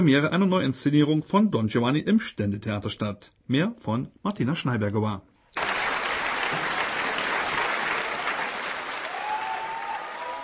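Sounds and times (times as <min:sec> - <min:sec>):
speech: 0:00.0 - 0:05.3
applause after an opera premiere: 0:05.6 - 0:10.4.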